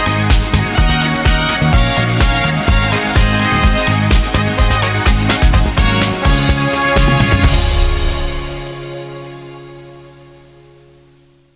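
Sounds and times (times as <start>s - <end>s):
background brass fanfare: 0.0s - 10.3s.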